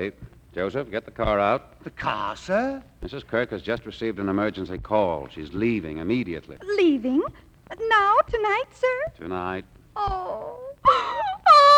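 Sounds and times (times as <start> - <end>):
speech: 0.0 - 11.1
woman crying in loud wailing sobs: 10.0 - 11.7.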